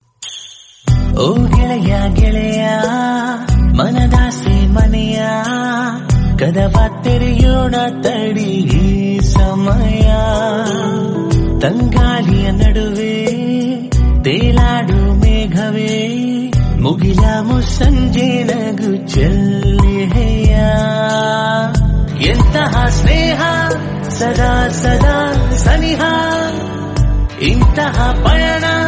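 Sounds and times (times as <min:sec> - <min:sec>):
Kannada song: 0:00.2 - 0:28.8.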